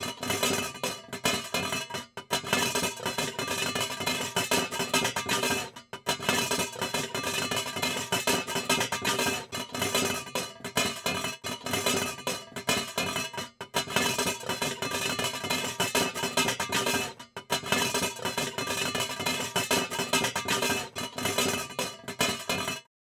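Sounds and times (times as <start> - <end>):
pot rattling: 0.0 - 22.9.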